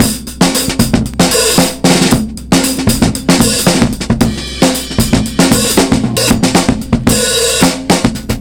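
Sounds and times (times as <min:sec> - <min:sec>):
breakbeat drum loop: 0:00.0 - 0:08.4.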